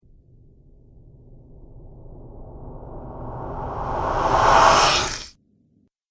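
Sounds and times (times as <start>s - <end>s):
zombie monster ghastly breath: 4.0s - 5.3s.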